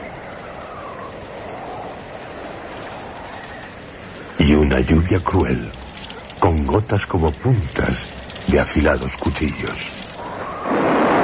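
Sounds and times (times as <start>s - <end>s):
howling hurricane wind: 0.0s - 11.2s
speech: 4.6s - 5.8s, 6.4s - 10.0s.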